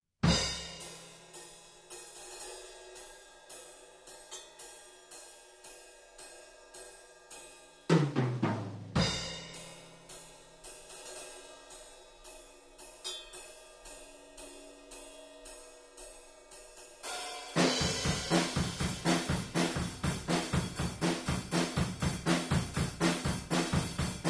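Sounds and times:
full rock drum kit practice drumming: 7.9 - 9.7, 17.4 - 24.2.

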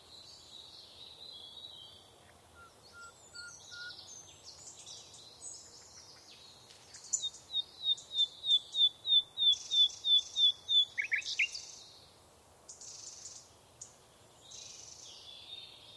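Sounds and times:
bird twittering on a summer morning: 2.6 - 4.0, 7.1 - 11.6.

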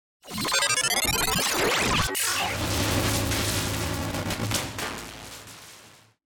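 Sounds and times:
digital distortion: 0.3 - 6.2.

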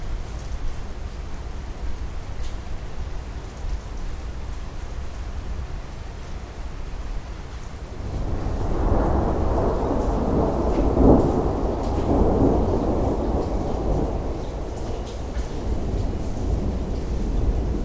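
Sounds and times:
heavy rain in Japan: 0.0 - 17.8
slight wind noise: 0.0 - 17.8
thunder in Japan: 7.9 - 17.8.

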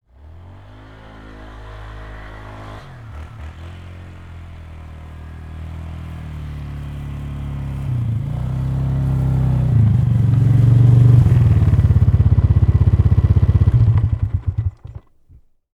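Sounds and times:
Polaris 500cc four-wheeler ATV approaching: 0.0 - 15.5
Polaris 500cc four-wheeler ATV engine shutting off: 4.9 - 15.5.

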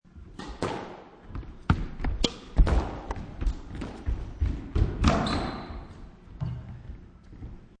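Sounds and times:
squash ball rally: 0.3 - 6.0.

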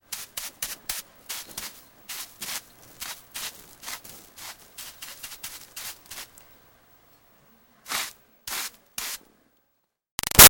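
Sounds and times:
brush sweeping dirt in archaeology foley: 0.0 - 6.4, 7.9 - 9.2.

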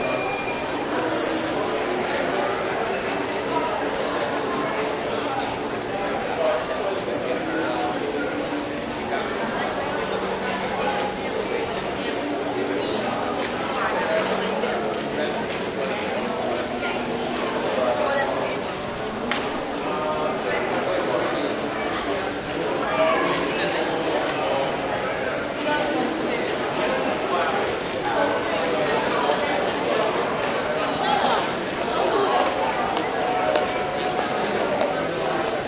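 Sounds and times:
busy crowd talking in an indoor American shopping mall: 0.0 - 35.6
many people walking in an indoor American shopping mall: 13.0 - 18.0, 18.6 - 19.8, 29.6 - 35.6.

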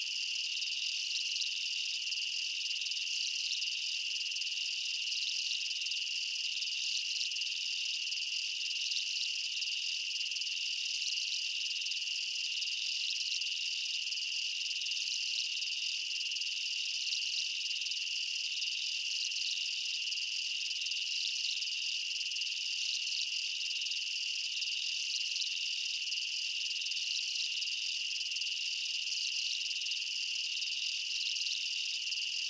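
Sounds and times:
insects chirping at night in a jungle: 0.0 - 32.4.

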